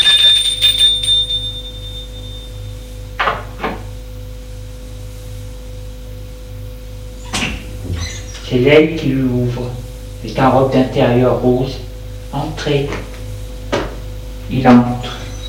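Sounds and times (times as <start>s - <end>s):
doorbell ringing at a woman's front door: 0.0s - 2.9s
low hum: 0.0s - 12.4s
speech: 8.5s - 13.1s, 14.5s - 15.2s.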